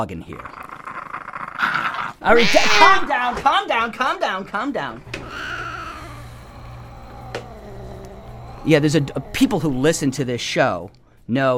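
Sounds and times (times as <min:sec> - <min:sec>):
speech: 0:00.0 - 0:00.7, 0:02.2 - 0:05.5, 0:08.6 - 0:11.5
nervous cat meowing: 0:02.2 - 0:03.3, 0:05.0 - 0:10.2.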